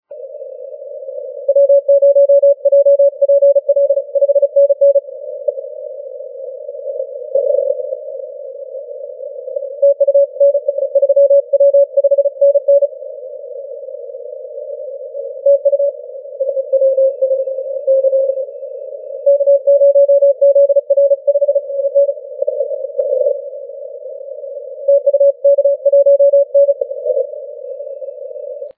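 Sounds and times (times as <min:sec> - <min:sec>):
40m band CW Morse code tones: 0:01.4 - 0:05.1, 0:09.7 - 0:12.9, 0:15.4 - 0:18.6, 0:19.2 - 0:23.4, 0:24.9 - 0:27.3.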